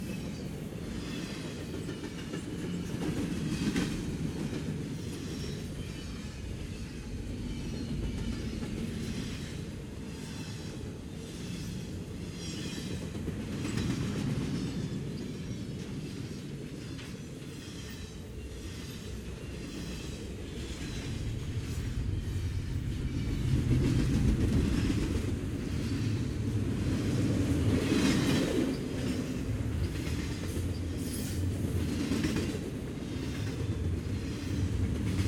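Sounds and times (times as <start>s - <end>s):
freight train with locomotive and cars passing by: 0.0s - 35.2s.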